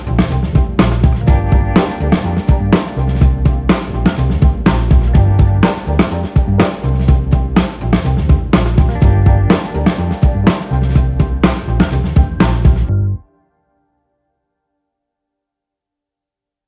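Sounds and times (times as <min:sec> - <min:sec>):
Motown blues music: 0:00.0 - 0:13.3.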